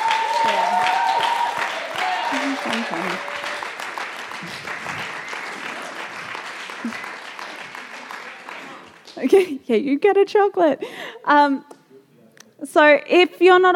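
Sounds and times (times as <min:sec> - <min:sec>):
audience applause: 0:00.0 - 0:09.4
speech: 0:02.6 - 0:03.3, 0:04.4 - 0:04.7, 0:09.2 - 0:11.7, 0:12.7 - 0:13.7.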